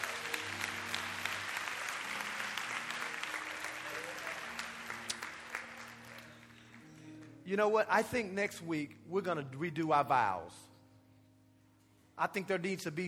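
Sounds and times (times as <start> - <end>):
crowd applause: 0.0 - 7.3
speech: 7.5 - 10.7, 12.2 - 13.0.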